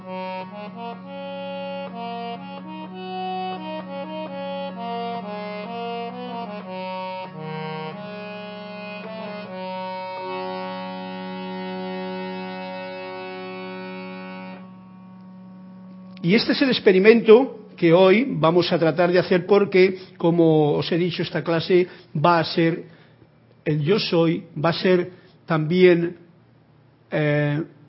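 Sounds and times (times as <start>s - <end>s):
reedy air-driven keyboard instrument holding a low drone: 0.0s - 19.1s
speech: 16.2s - 23.0s, 23.6s - 26.2s, 27.1s - 27.8s.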